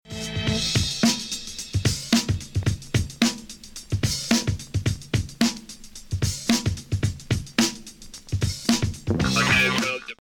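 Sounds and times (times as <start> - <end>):
music beat: 0.1 - 10.1.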